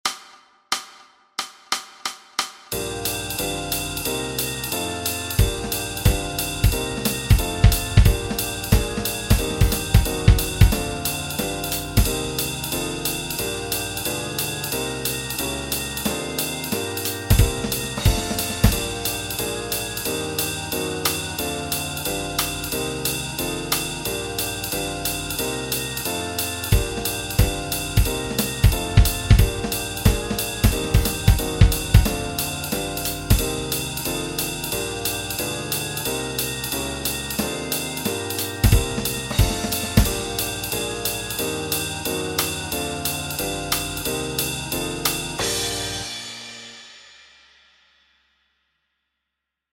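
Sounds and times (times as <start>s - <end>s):
walking bass backing track: 5.3s - 46.2s.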